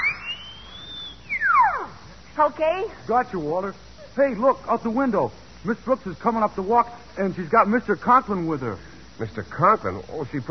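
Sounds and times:
whistle being blown: 0:00.0 - 0:02.0
speech: 0:02.4 - 0:10.4.

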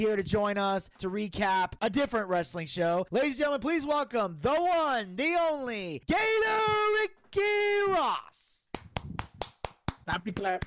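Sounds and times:
speech: 0:00.0 - 0:08.5, 0:10.1 - 0:10.6
clapping applause: 0:08.6 - 0:10.6.

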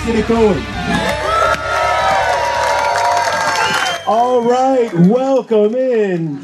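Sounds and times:
speech: 0:00.1 - 0:01.1, 0:04.1 - 0:06.4
live audience cheering and whooping at 50 West Brewing Company: 0:00.7 - 0:05.1.

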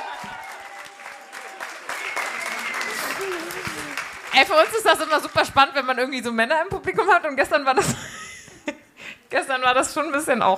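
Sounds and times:
audience applause: 0:00.0 - 0:06.1
speech: 0:04.4 - 0:08.1, 0:09.3 - 0:10.5.

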